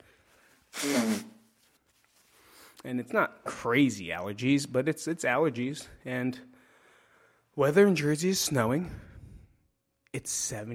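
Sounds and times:
nose blowing: 0.7s - 1.6s
speech: 2.8s - 6.5s, 7.6s - 9.1s, 10.1s - 10.7s.

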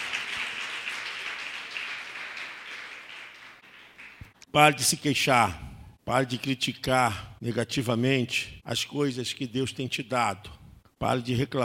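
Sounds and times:
audience applauding: 0.0s - 4.4s
speech: 4.5s - 11.6s.

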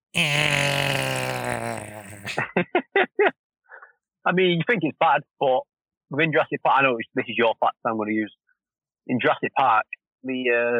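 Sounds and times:
speech: 0.1s - 0.8s, 1.5s - 3.4s, 4.2s - 10.7s
voice imitating a silly T-Rex noise: 0.1s - 2.4s.

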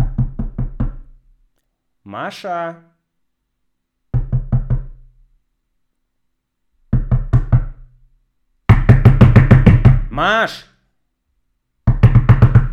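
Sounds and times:
knocking on a door: 0.0s - 1.0s, 4.1s - 5.0s, 6.9s - 7.8s, 8.7s - 10.1s, 11.8s - 12.7s
speech: 2.1s - 2.9s, 10.2s - 10.7s.

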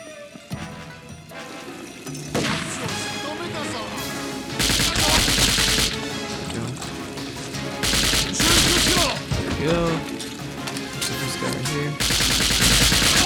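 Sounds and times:
video game sounds: 0.0s - 13.2s
automatic gunfire in a video game: 4.6s - 6.2s, 7.8s - 9.3s, 12.0s - 13.2s.

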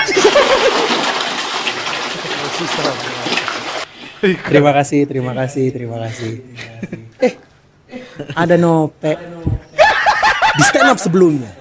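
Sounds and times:
laughter: 0.0s - 1.3s, 9.7s - 11.1s
crowd applause: 0.0s - 3.9s
speech: 4.2s - 7.4s, 8.2s - 9.7s, 10.6s - 11.6s.

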